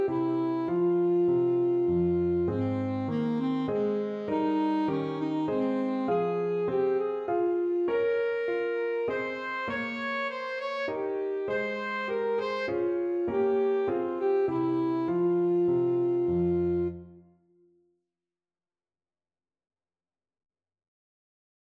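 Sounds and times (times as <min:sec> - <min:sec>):
breathy saxophone with air sound: 0:00.0 - 0:17.2.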